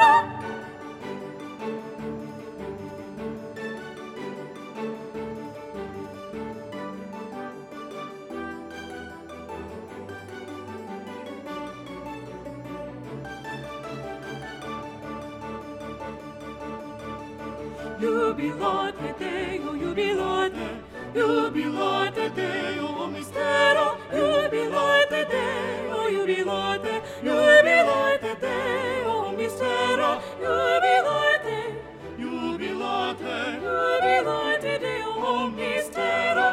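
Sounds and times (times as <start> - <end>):
soprano singing: 0.0 - 2.0, 17.4 - 36.5.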